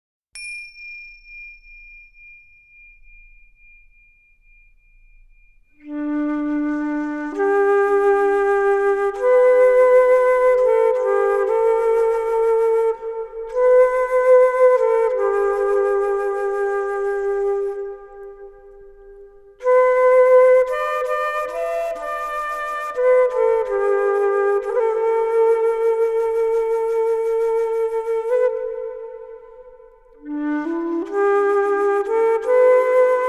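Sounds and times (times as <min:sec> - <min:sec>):
Tibetan meditation music: 0:00.4 - 0:33.2.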